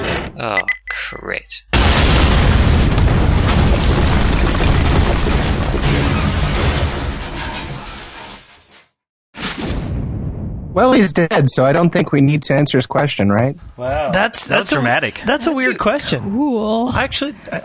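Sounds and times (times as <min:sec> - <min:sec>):
speech: 0:00.4 - 0:01.7, 0:10.8 - 0:17.6
bomb exploding in a video game: 0:01.8 - 0:08.2, 0:09.4 - 0:11.2.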